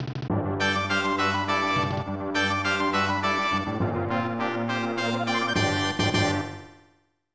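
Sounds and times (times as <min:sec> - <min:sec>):
game map clear sound: 0:00.6 - 0:06.8.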